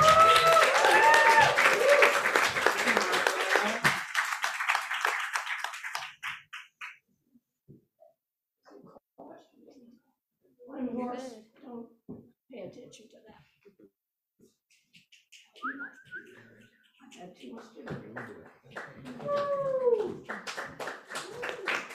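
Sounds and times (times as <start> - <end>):
audience applause for an open mic reader: 0.0 - 6.8, 18.0 - 21.9.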